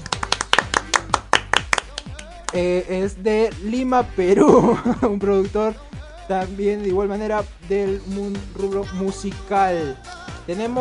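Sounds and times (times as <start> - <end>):
thin uneven audience applause: 0.0 - 2.6
speech: 2.5 - 10.7
laughter: 4.3 - 5.2.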